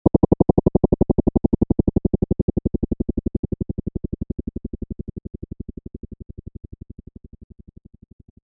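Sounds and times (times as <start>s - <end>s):
helicopter chopper blades: 0.0s - 4.2s.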